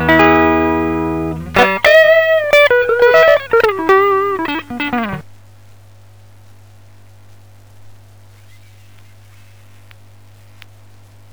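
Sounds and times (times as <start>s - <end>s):
clean electric guitar through guitar amplifiers: 0.0s - 5.2s.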